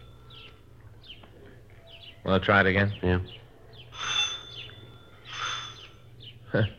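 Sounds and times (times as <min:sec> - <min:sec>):
old-fashioned doorbell ringing: 0:00.0 - 0:00.4, 0:03.9 - 0:06.1
speech: 0:02.2 - 0:03.4, 0:06.5 - 0:06.7.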